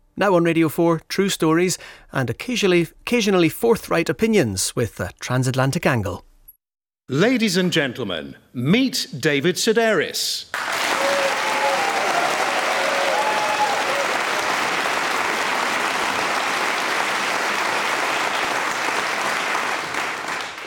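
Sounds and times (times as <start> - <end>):
speech: 0.2 - 6.3, 7.1 - 10.6
audience applause: 10.5 - 20.6
faint cheers: 10.6 - 16.0.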